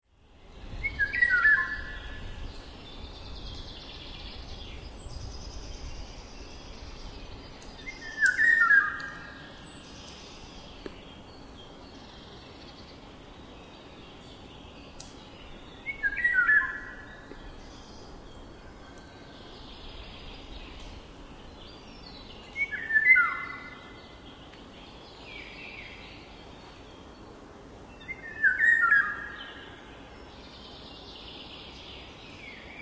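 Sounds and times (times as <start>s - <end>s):
background hiss: 0.1s - 32.8s
Eurasian golden oriole singing: 0.6s - 11.0s, 15.5s - 20.8s, 21.9s - 24.1s, 28.0s - 29.7s.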